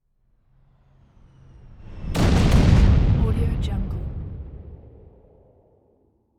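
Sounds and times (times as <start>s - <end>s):
missile exploding: 2.1s - 5.6s.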